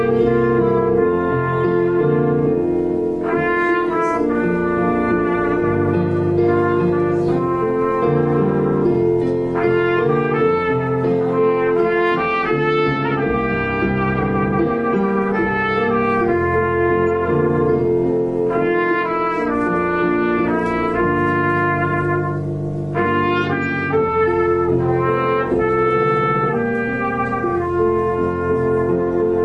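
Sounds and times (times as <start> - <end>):
piano playing a prelude: 0.0 - 29.4
trumpet playing a prelude: 0.0 - 29.4.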